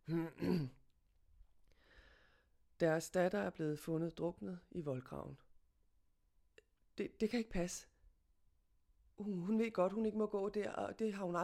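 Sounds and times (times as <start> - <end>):
police officer clearing his throat: 0.1 - 0.8
speech: 0.1 - 0.8, 2.8 - 5.4, 7.0 - 7.9, 9.2 - 11.4.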